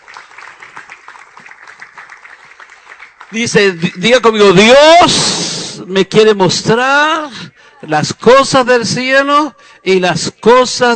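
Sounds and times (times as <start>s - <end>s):
audience applause: 0.0s - 4.2s
speech: 3.3s - 10.9s.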